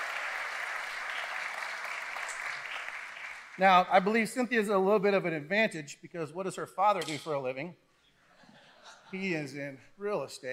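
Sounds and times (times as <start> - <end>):
audience applause: 0.0 - 3.6
speech: 3.6 - 7.8, 9.1 - 10.5.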